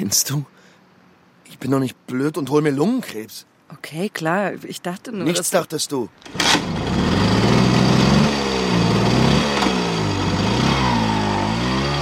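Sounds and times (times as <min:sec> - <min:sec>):
speech: 0:00.0 - 0:00.6, 0:01.5 - 0:07.3
two-stroke moped engine riding in circles on a market square: 0:06.2 - 0:11.9.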